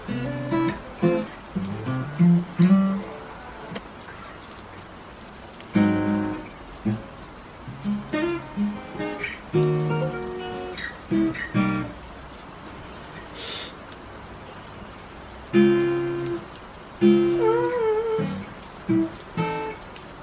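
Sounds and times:
guitar strumming: 0:00.0 - 0:03.9, 0:05.7 - 0:07.1, 0:07.7 - 0:12.0, 0:17.0 - 0:19.8
rain hissing: 0:00.0 - 0:20.2
person singing: 0:17.2 - 0:18.5.

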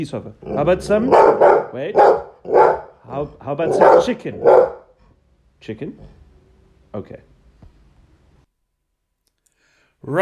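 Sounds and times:
speech: 0:00.0 - 0:04.8, 0:05.6 - 0:06.2, 0:06.9 - 0:07.3, 0:10.0 - 0:10.2
dog barking: 0:00.5 - 0:03.0, 0:03.6 - 0:05.0.

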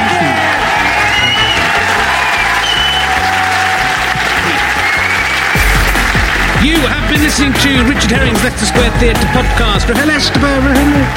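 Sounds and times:
audience applause: 0:00.0 - 0:11.1
speech: 0:07.4 - 0:11.1.

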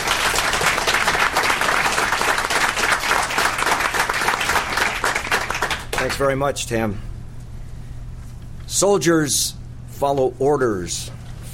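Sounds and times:
audience applause welcoming a police chief: 0:00.0 - 0:06.2
speech: 0:06.0 - 0:07.1, 0:08.7 - 0:11.5.

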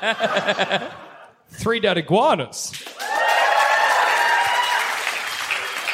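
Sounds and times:
laughter: 0:00.0 - 0:01.4
speech: 0:00.0 - 0:02.9
audience clapping: 0:02.7 - 0:05.9.

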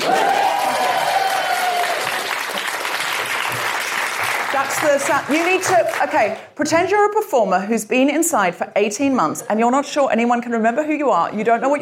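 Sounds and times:
audience clapping: 0:00.0 - 0:06.5
speech: 0:04.6 - 0:11.7.

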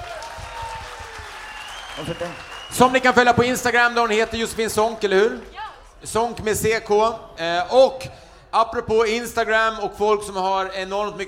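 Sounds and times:
warm audience applause for a guest on stage: 0:00.0 - 0:05.4
speech: 0:02.0 - 0:11.2.

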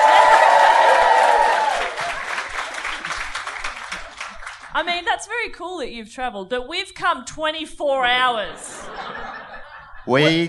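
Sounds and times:
audience round of applause: 0:00.0 - 0:04.7
speech: 0:04.8 - 0:09.2, 0:10.1 - 0:10.4
laughter: 0:08.4 - 0:10.4.

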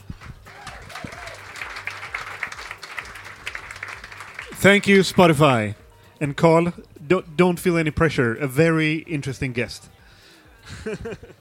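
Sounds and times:
crowd applauding: 0:00.0 - 0:05.5
person cheering: 0:00.4 - 0:01.6
speech: 0:04.6 - 0:10.0, 0:10.8 - 0:11.3
laughter: 0:10.6 - 0:11.3.

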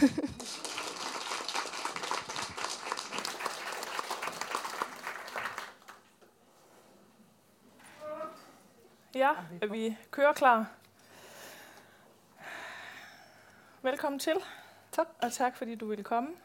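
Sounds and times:
speech: 0:00.0 - 0:00.3, 0:09.2 - 0:10.8, 0:13.8 - 0:16.4
audience applause: 0:00.0 - 0:06.0.

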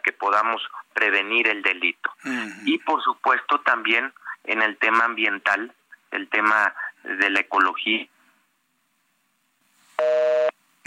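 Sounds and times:
speech: 0:00.1 - 0:08.1
telephone beep during redialing of a number: 0:10.0 - 0:10.5.

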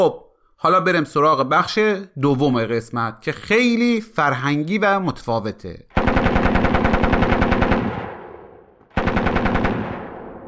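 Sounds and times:
speech: 0:00.0 - 0:06.3
machine gun fire: 0:05.9 - 0:10.4.

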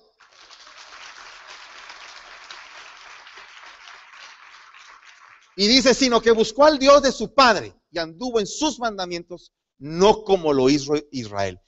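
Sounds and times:
audience applause: 0:00.1 - 0:05.7
speech: 0:05.6 - 0:11.6.

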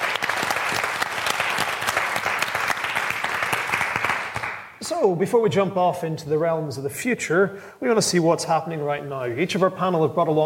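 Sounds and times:
warm audience applause welcoming a panel at a science festival theatre in Oxfordshire: 0:00.0 - 0:04.7
speech: 0:04.9 - 0:10.4.

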